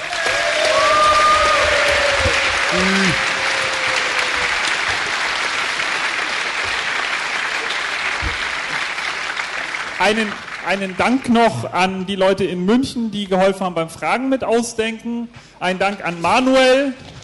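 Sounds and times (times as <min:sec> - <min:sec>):
audience applause for finalists: 0:00.0 - 0:11.7
speech: 0:10.0 - 0:17.1.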